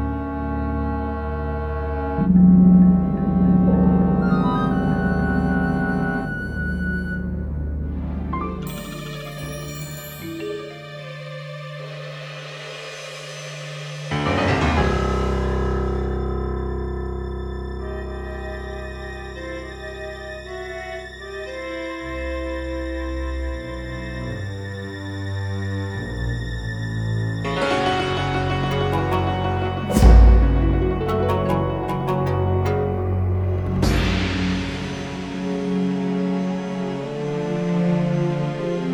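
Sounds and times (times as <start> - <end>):
Chinese ambient music: 0.0 - 38.9.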